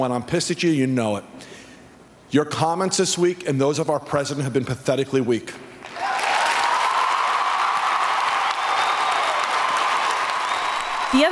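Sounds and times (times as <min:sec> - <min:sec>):
speech: 0:00.0 - 0:01.6, 0:02.3 - 0:06.0, 0:11.1 - 0:11.3
large arena crowd applauding and cheering: 0:05.8 - 0:11.3
whoops and shouts: 0:05.9 - 0:11.3.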